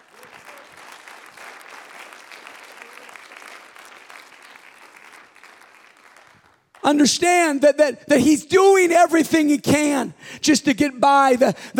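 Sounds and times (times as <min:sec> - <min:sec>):
large audience applause: 0:00.0 - 0:06.8
speech: 0:06.9 - 0:11.7.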